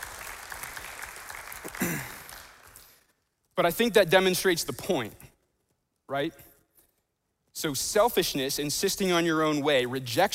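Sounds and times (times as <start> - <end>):
audience applause: 0.0 - 3.0
speech: 1.8 - 2.2, 3.6 - 5.2, 6.1 - 6.5, 7.6 - 10.3.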